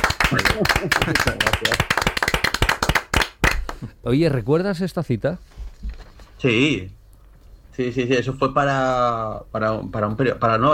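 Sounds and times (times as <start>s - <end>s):
audience applause: 0.0s - 3.8s
speech: 0.3s - 1.8s, 4.1s - 5.6s, 6.4s - 7.0s, 7.8s - 10.7s.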